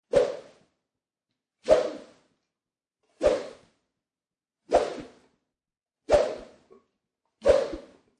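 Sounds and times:
karate swishes: 0:00.1 - 0:00.6, 0:01.6 - 0:02.3, 0:03.2 - 0:03.7, 0:04.7 - 0:05.2, 0:06.1 - 0:06.7, 0:07.4 - 0:08.0
sword swish: 0:00.1 - 0:00.7, 0:01.6 - 0:02.3, 0:03.1 - 0:03.8, 0:04.7 - 0:05.3, 0:06.1 - 0:06.7, 0:07.4 - 0:08.0.

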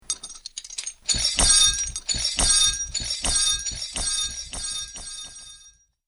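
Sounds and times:
metal chains: 0:00.0 - 0:05.8
magic ambience: 0:01.1 - 0:05.6.

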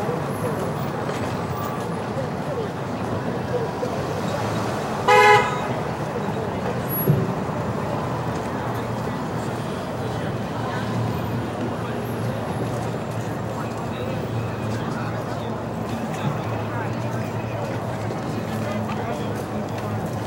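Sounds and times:
city ambience in Times Square New York: 0:00.0 - 0:20.2.

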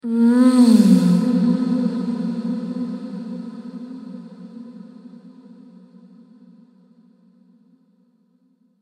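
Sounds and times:
woman moaning with reverb: 0:00.0 - 0:03.4.

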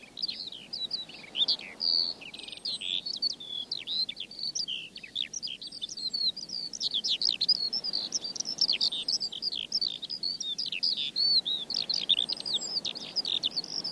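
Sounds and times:
Eurasian skylark singing in song flight: 0:00.0 - 0:13.9.

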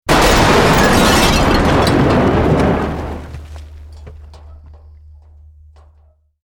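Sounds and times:
medium building collapse: 0:00.0 - 0:06.2.

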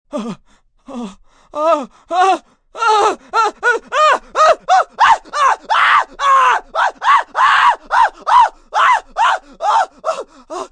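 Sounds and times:
long male scream of fear and terror walking on hot coals: 0:02.2 - 0:10.2.

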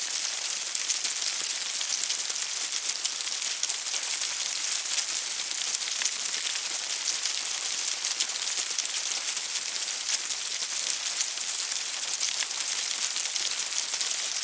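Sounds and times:
insects in a hive with heavy activity: 0:00.0 - 0:14.4.

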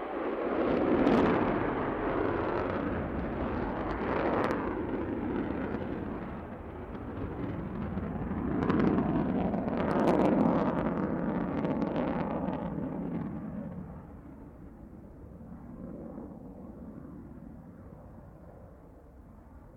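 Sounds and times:
jet fighter idling, launching and flying off: 0:00.0 - 0:19.7.

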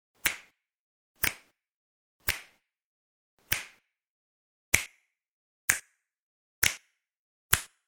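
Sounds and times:
fingers snapping: 0:00.2 - 0:00.5, 0:01.2 - 0:01.5, 0:02.2 - 0:02.6, 0:03.4 - 0:03.8, 0:05.7 - 0:06.0, 0:06.6 - 0:06.8, 0:07.5 - 0:07.8.

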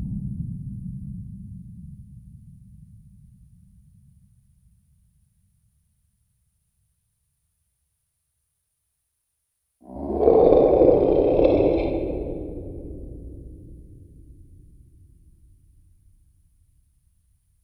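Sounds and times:
menacing monster sounds: 0:09.9 - 0:14.3.

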